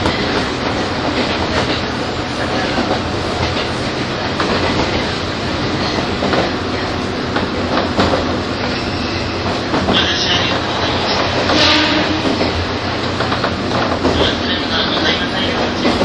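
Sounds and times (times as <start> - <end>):
201-series Chuo Line rapid train rail rumble: 0.0 - 16.0.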